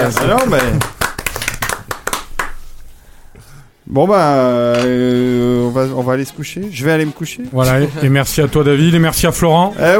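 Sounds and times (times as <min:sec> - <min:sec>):
speech: 0:00.0 - 0:01.0, 0:03.9 - 0:09.9
one person clapping hands: 0:00.1 - 0:02.7.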